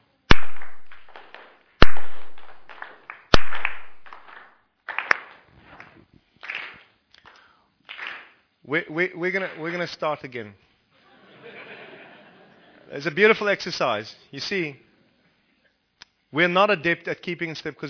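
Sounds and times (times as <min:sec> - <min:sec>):
rhythmic hand clapping: 0:00.3 - 0:08.4
speech: 0:08.7 - 0:10.7, 0:12.9 - 0:14.8, 0:16.3 - 0:17.8
laughter: 0:11.0 - 0:13.0.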